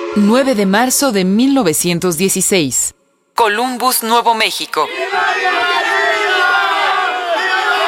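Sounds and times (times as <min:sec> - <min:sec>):
speech: 0:00.2 - 0:06.7
crowd shouting battle cries during attack: 0:04.8 - 0:07.8.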